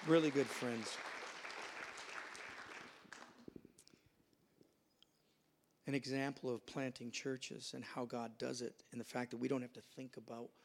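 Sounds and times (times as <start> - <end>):
speech: 0.0 - 1.2, 5.9 - 10.6
audience applause: 0.0 - 3.4.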